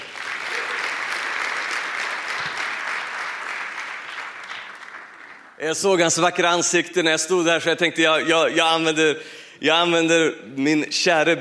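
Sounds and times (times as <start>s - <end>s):
audience applause: 0.0s - 5.6s
speech: 5.6s - 11.4s.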